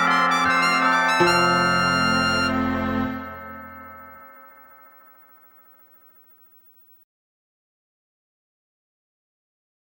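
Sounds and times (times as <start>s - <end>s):
chimes: 0.0s - 6.9s.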